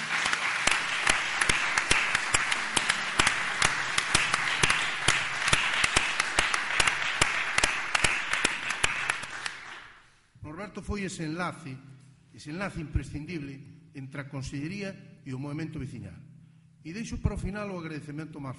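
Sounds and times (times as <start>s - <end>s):
audience applause: 0.0s - 10.0s
speech: 10.8s - 18.5s.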